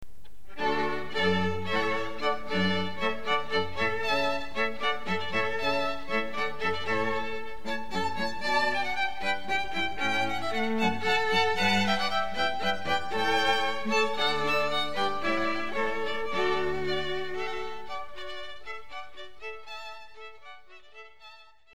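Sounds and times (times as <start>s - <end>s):
baroque hornpipe from a suite: 0.5s - 19.6s.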